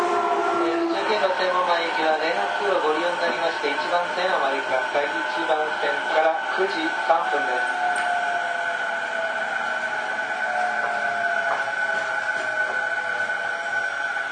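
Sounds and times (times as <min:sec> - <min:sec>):
Toei 10-300 series train motor whine: 0:00.0 - 0:14.3.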